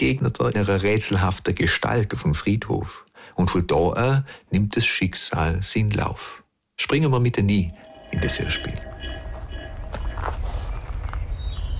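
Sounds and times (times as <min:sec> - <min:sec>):
speech: 0:00.0 - 0:08.9
faint low background: 0:00.0 - 0:11.2
slow footsteps along rows of graves in a cemetery: 0:07.7 - 0:11.7.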